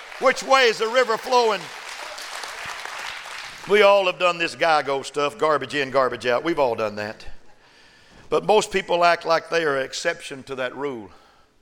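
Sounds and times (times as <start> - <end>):
audience clapping hands: 0.0 - 4.3
speech: 0.2 - 1.8, 3.6 - 7.3, 8.3 - 11.2.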